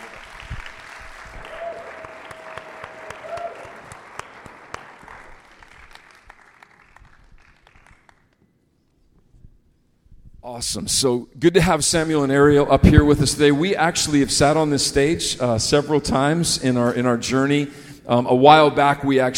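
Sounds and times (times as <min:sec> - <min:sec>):
audience applause: 0:00.0 - 0:08.4
speech: 0:10.5 - 0:19.3.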